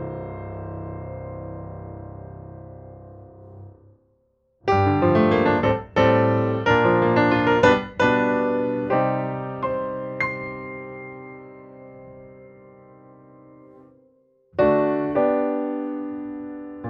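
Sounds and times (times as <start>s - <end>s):
Steinway D grand piano dry: 0.0s - 4.0s, 4.6s - 16.8s.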